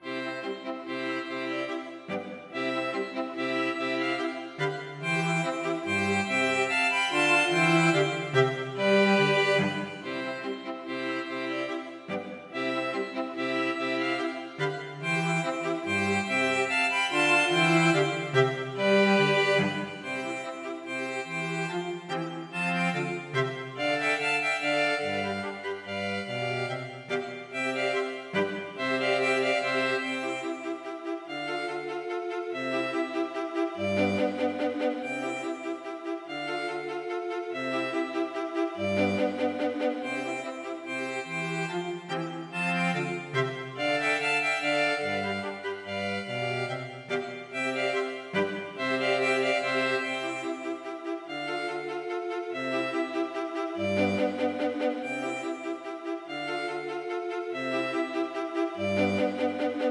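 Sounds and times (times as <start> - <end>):
string quartet playing a minuet: 0.0 - 59.9.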